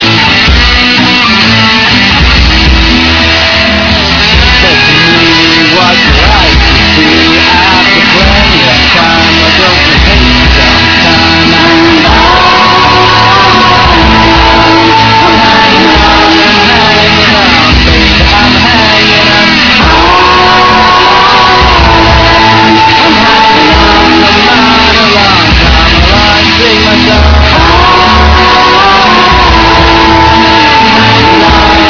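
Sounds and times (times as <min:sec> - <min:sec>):
blues music: 0:00.0 - 0:31.8.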